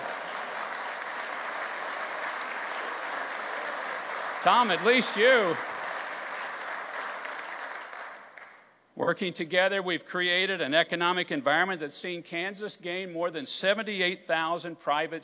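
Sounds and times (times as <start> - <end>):
audience applause: 0.0 - 8.6
speech: 4.4 - 5.7, 9.1 - 15.2.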